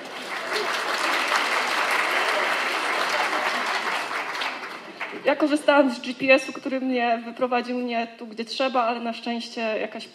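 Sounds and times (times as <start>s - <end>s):
audience applause: 0.0s - 5.3s
speech: 5.2s - 10.1s.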